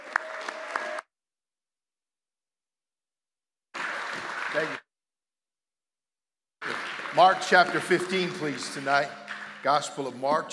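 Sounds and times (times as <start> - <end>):
audience applause: 0.0 - 1.1, 3.8 - 4.8, 6.6 - 10.5
speech: 4.6 - 4.8, 7.2 - 10.5.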